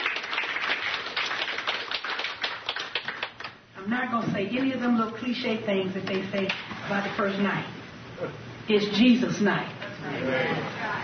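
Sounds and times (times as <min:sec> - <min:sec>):
audience clapping hands: 0:00.0 - 0:03.6
speech: 0:03.8 - 0:11.0.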